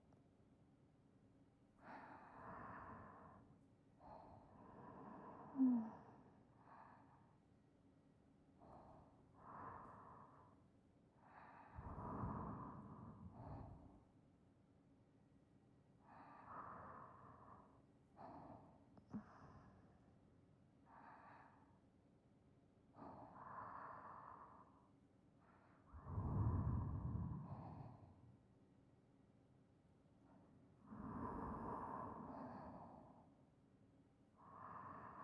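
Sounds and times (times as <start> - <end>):
sleeping breath beside listener: 1.8 - 7.4, 8.6 - 10.6, 11.2 - 14.1, 16.0 - 20.1, 22.9 - 28.3, 30.3 - 33.4, 34.4 - 35.2.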